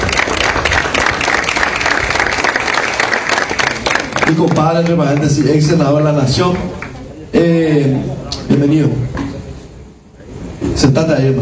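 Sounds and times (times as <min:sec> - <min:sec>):
audience applause: 0:00.0 - 0:07.1
speech: 0:04.3 - 0:06.7, 0:07.3 - 0:09.2, 0:10.8 - 0:11.3.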